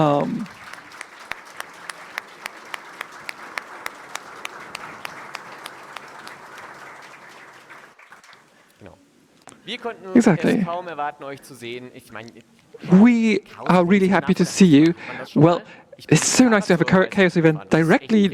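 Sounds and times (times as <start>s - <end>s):
speech: 0.0s - 0.6s, 9.7s - 18.3s
audience applause: 0.0s - 8.8s, 12.8s - 18.3s
laughter: 1.8s - 7.8s, 9.8s - 18.3s.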